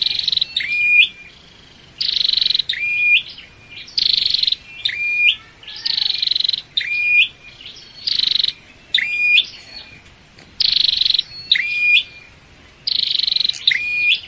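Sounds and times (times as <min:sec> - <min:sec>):
flowerpecker buzzy song with rising whistles: 0:00.0 - 0:14.2.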